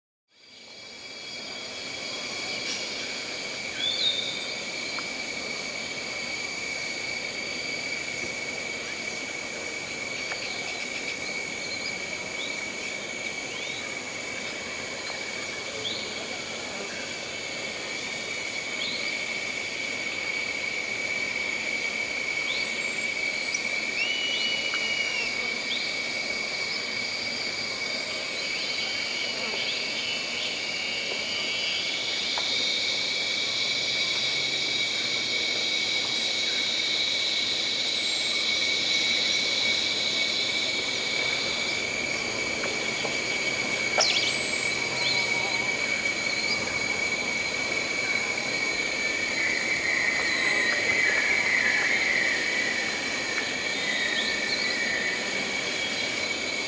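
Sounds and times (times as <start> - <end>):
forest ambience on a hot summer day: 0.3 - 56.6.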